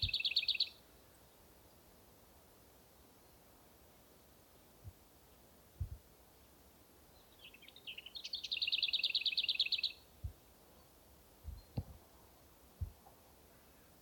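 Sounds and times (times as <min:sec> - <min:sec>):
lesser whitethroat singing: 0:00.0 - 0:01.4, 0:07.1 - 0:10.1.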